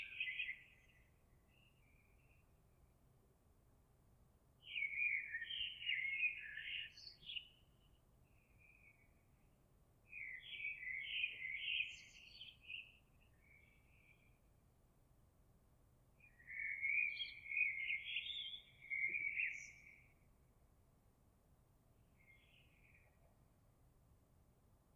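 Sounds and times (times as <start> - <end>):
blackbird: 0.0 - 2.4, 4.6 - 9.2, 10.1 - 14.4, 16.2 - 20.2, 22.2 - 23.4.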